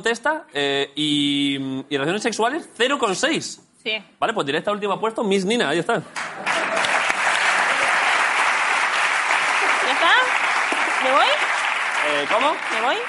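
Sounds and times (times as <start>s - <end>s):
speech: 0.0s - 6.8s, 12.1s - 13.0s
crowd applause: 6.2s - 13.0s.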